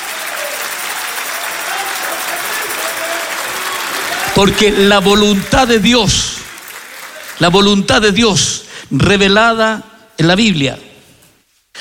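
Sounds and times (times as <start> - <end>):
audience applauding: 0.0 - 8.1
speech: 4.4 - 6.4, 7.4 - 10.8.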